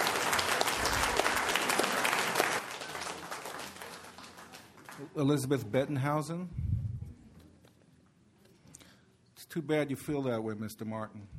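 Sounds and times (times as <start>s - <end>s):
audience applause: 0.0s - 5.2s
speech: 5.2s - 6.6s, 9.6s - 11.3s.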